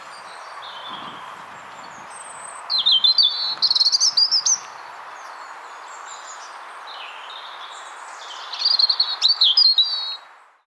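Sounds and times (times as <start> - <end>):
European robin singing: 0.0 - 10.2.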